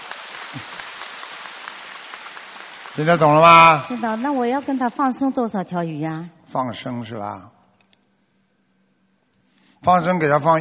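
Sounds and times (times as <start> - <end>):
audience applause at a Buddhist talk: 0.0 - 5.2
speech: 3.0 - 7.6, 9.8 - 10.5.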